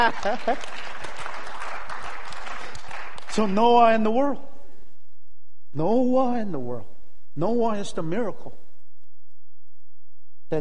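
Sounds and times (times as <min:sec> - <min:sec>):
speech: 0:00.0 - 0:01.1, 0:03.4 - 0:04.5, 0:05.7 - 0:08.6, 0:10.5 - 0:10.6
audience clapping: 0:00.0 - 0:04.1.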